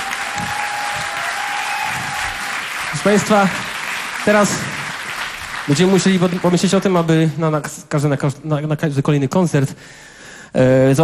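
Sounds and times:
audience applause at a radio concert: 0.0s - 7.2s
speech: 3.0s - 4.7s, 5.6s - 11.0s.

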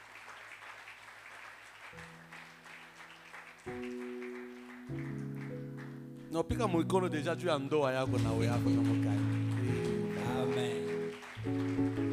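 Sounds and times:
church congregation applauding a couple's wedding anniversary: 0.0s - 6.6s, 8.0s - 12.1s
speech: 3.6s - 4.0s, 6.3s - 9.4s
sustained keyboard chords: 3.6s - 12.1s.

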